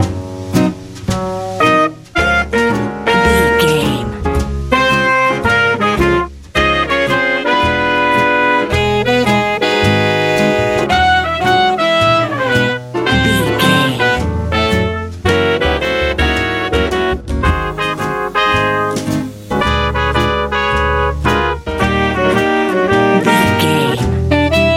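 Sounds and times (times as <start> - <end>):
easy jazz: 0.0 - 24.7.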